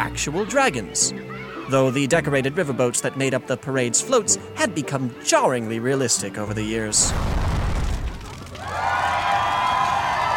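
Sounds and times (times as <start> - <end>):
speech: 0.1 - 7.6
crowd cheering at a parade: 7.8 - 10.3.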